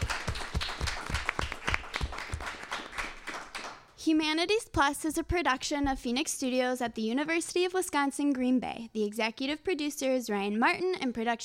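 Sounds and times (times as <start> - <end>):
audience applause: 0.0 - 3.8
speech: 4.1 - 11.4.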